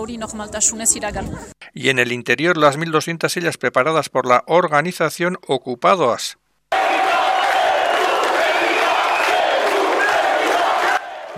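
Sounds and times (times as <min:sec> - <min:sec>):
speech: 0:00.0 - 0:06.9
crowd shouting: 0:06.7 - 0:11.3
crowd whistling: 0:07.9 - 0:10.2.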